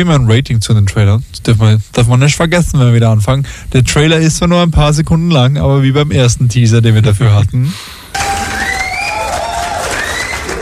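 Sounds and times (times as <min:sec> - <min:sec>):
speech: 0:00.0 - 0:08.0
crowd cheering and applause: 0:08.2 - 0:10.6
high whoops and whistle-like cries: 0:08.2 - 0:10.6.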